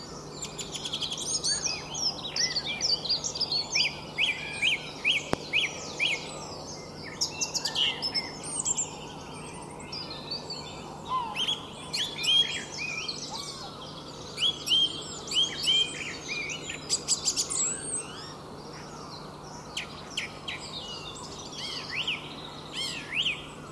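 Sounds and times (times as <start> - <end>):
dawn birdsong in England in February: 0.0 - 23.7.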